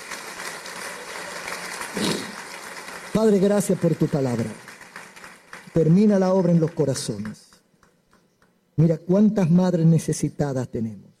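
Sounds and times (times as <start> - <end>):
church congregation applauding during a Spanish-language service: 0.0 - 7.6
speech: 3.2 - 4.7, 5.8 - 7.4, 8.8 - 11.1.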